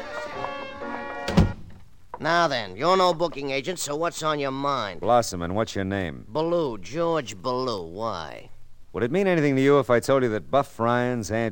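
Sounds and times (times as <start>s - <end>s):
door shutting with a dull thunk: 0.0s - 2.3s
speech: 2.2s - 11.5s.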